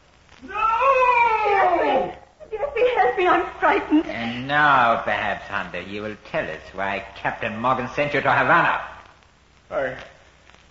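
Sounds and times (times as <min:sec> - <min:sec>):
man's scream echoing around the walls: 0:00.4 - 0:02.1
speech: 0:03.2 - 0:08.9, 0:09.7 - 0:10.1.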